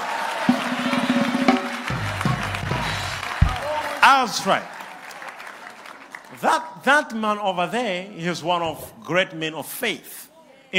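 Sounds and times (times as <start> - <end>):
audience clapping hands: 0.0 - 7.2
speech: 4.1 - 4.8, 6.4 - 10.7.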